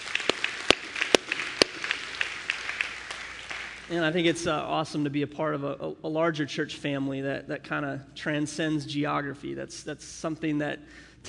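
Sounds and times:
scattered crowd clapping steadily: 0.0 - 4.1
speech: 3.9 - 11.1.

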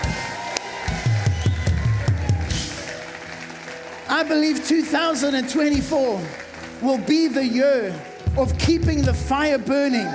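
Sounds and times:
audience clapping: 0.0 - 10.1
speech: 4.2 - 10.1.

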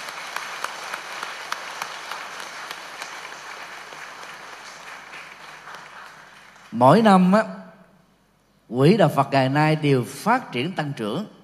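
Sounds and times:
audience applause: 0.0 - 7.0
speech: 6.7 - 7.6, 8.7 - 11.4.

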